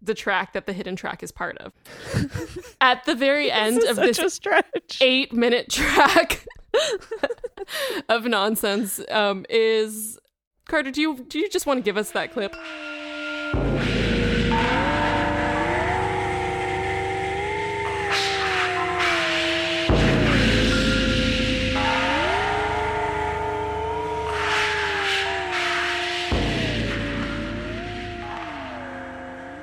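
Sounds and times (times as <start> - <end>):
speech: 0.0 - 13.9
laughter: 1.9 - 2.8, 3.6 - 4.9, 5.8 - 7.9
theremin playing a Christmas melody: 11.8 - 29.6.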